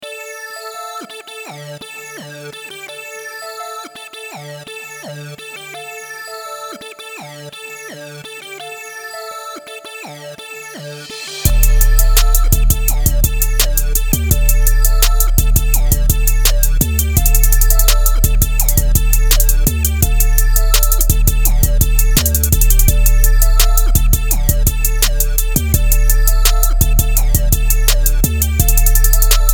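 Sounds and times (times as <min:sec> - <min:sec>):
chords: 0:11.4 - 0:29.5.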